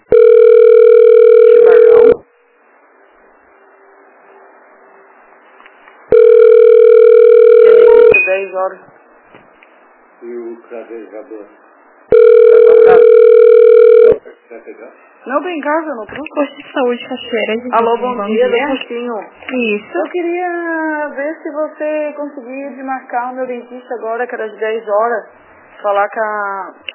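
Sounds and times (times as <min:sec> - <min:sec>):
telephone ringing tone while waiting on hold: 0:00.0 - 0:02.3, 0:06.1 - 0:08.2, 0:12.1 - 0:14.2
speech: 0:08.4 - 0:08.9, 0:10.2 - 0:11.6, 0:14.5 - 0:26.9.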